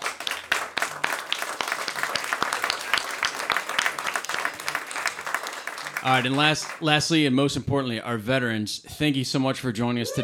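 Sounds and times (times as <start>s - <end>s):
audience applause: 0.0s - 7.0s
speech: 6.0s - 10.2s.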